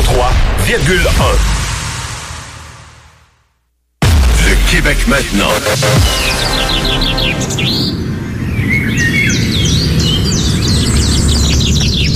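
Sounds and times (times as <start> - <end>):
steady low rumble: 0.0 - 11.4
speech: 0.7 - 1.6, 4.9 - 8.0
birds singing in a dawn chorus: 6.4 - 12.1.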